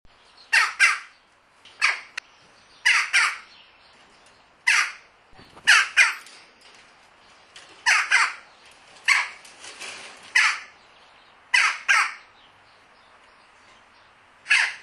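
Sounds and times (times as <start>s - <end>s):
Red-rumped swallow harsh nasal calls: 0.4s - 3.6s, 4.6s - 6.3s, 7.8s - 8.5s, 10.3s - 10.8s, 11.5s - 12.3s, 14.4s - 14.8s.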